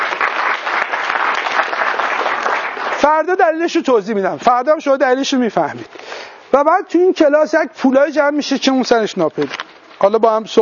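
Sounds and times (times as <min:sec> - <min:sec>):
class applauding a student: 0:00.0 - 0:03.3
speech: 0:03.1 - 0:10.6.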